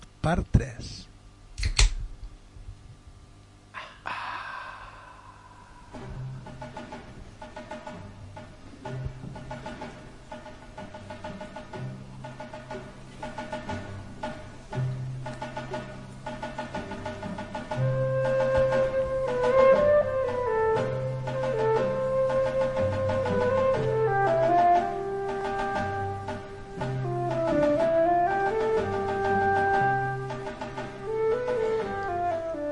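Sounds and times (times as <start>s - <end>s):
speech: 0.2s - 1.1s
orchestral music: 5.7s - 32.7s.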